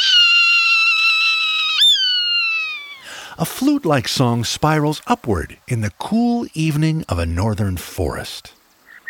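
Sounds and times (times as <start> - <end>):
Swainson's hawk raspy scream: 0.0 - 3.4
speech: 3.4 - 8.6.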